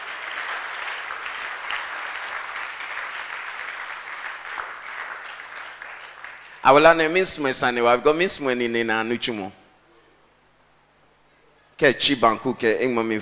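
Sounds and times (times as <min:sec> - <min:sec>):
audience clapping: 0:00.0 - 0:07.1
speech: 0:06.6 - 0:09.6, 0:11.8 - 0:13.2.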